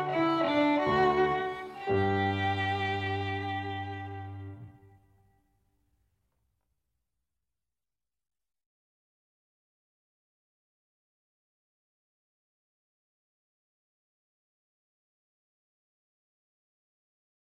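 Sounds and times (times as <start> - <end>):
baroque overture in G minor: 0.0 - 4.8.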